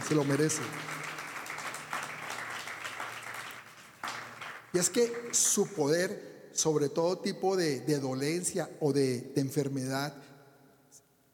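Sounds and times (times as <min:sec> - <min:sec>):
applause: 0:00.0 - 0:06.0
speech: 0:00.1 - 0:01.0, 0:04.7 - 0:10.3.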